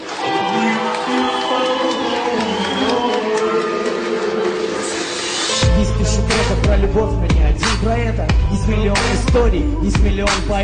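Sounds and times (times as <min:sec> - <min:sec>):
audience applause: 0:00.0 - 0:05.6
speech: 0:06.9 - 0:10.6.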